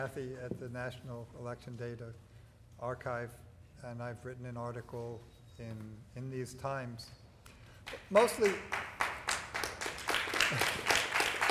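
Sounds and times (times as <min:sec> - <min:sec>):
speech: 0:00.0 - 0:07.2, 0:07.9 - 0:09.0, 0:10.5 - 0:11.0
audience applause: 0:08.1 - 0:11.4.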